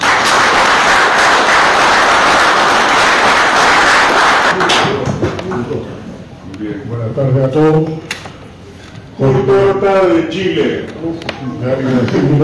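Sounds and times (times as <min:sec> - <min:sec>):
audience applause: 0:00.0 - 0:05.1
speech: 0:07.1 - 0:08.0, 0:09.2 - 0:12.4.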